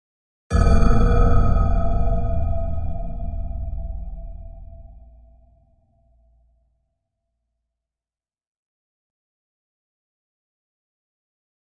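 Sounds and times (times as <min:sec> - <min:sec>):
bell chime with reverb: 0:00.5 - 0:05.3.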